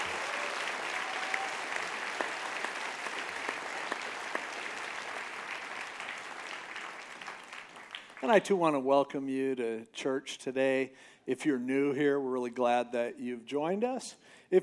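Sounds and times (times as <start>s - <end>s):
crowd applauding: 0.0s - 8.5s
speech: 8.3s - 14.6s.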